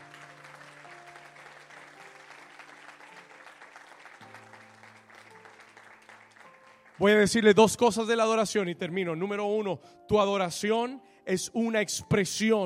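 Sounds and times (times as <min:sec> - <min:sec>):
audience applause: 0:00.0 - 0:07.2
speech: 0:07.0 - 0:12.6.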